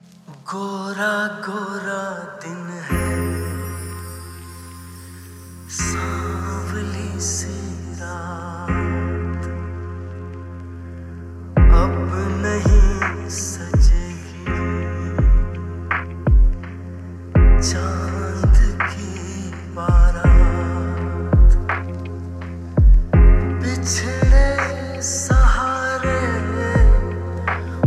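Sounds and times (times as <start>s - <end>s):
lofi music: 0.0s - 27.8s.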